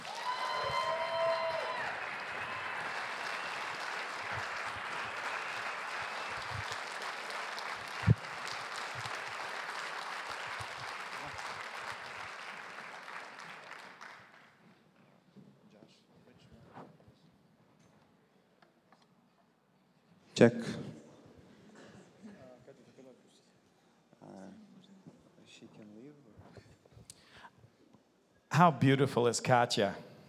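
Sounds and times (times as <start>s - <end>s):
church congregation applauding to welcome two guests from Russia: 0.0s - 14.6s
speech: 20.4s - 20.8s, 28.6s - 30.1s.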